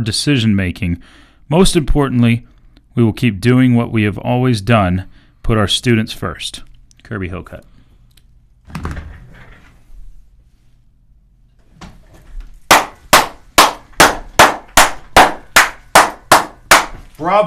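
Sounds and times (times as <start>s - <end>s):
speech: 0.0s - 7.7s, 8.7s - 9.1s, 17.2s - 17.4s
loud hand clapping: 12.7s - 17.0s.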